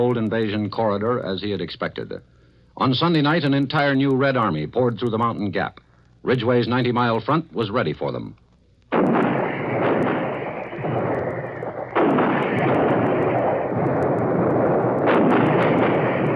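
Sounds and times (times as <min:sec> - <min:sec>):
speech: 0:00.0 - 0:08.4
heavy artillery fire from 155mm guns: 0:08.9 - 0:16.3.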